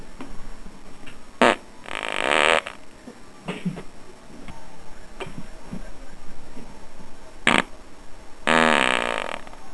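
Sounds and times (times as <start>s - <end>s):
farts: 1.4s - 2.8s, 7.5s - 7.7s, 8.5s - 9.6s.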